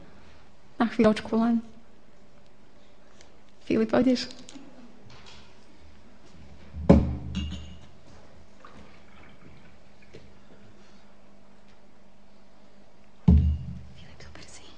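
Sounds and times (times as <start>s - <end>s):
speech: 0.8s - 1.7s, 3.7s - 4.5s
full drinking glass knocking: 13.3s - 13.8s.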